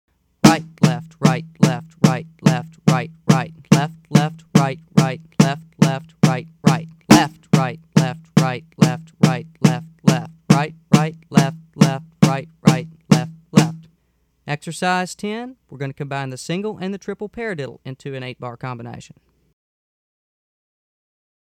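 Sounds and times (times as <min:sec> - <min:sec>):
fast exercise music: 0:00.5 - 0:13.9.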